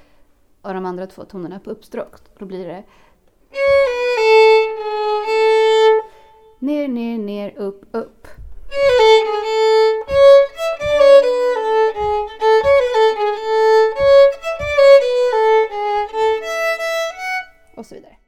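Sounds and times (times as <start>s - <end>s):
single-tone polska folk dance melody: 3.5s - 6.6s, 8.4s - 17.8s.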